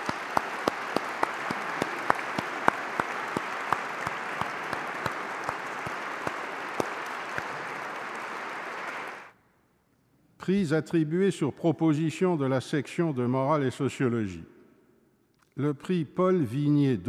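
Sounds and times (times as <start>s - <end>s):
audience applause for prize winners: 0.0s - 9.3s
speech: 10.4s - 14.6s, 15.6s - 17.0s.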